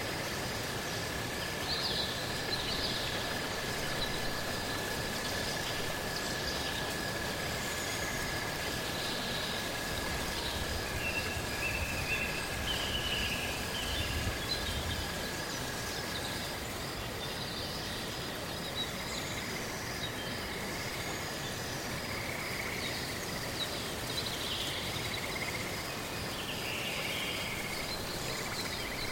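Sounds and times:
rain on fallen leaves in a forest at night: 0.0s - 16.8s
cicadas: 0.0s - 29.1s.

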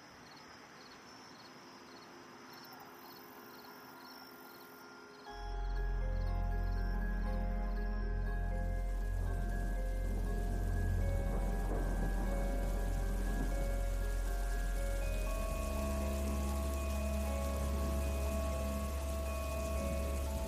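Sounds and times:
low sustained humming tones: 5.3s - 20.4s
rain falling during a storm: 5.8s - 20.4s.

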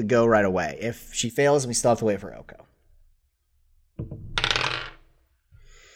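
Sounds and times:
speech: 0.0s - 2.7s, 4.0s - 4.4s
dice being rolled: 4.2s - 5.1s.

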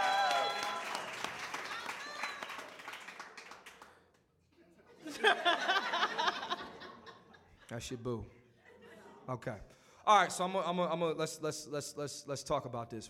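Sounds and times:
audience applause and cheering at a live show in Atlanta: 0.0s - 3.9s
laughter: 4.9s - 9.5s
speech: 7.7s - 8.4s, 9.3s - 13.0s.

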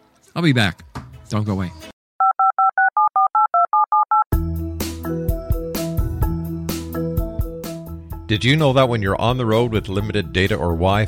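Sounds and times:
speech: 0.4s - 1.8s, 8.3s - 11.0s
touch-tone dialing beeps: 2.2s - 4.3s
loud music: 4.4s - 8.4s.

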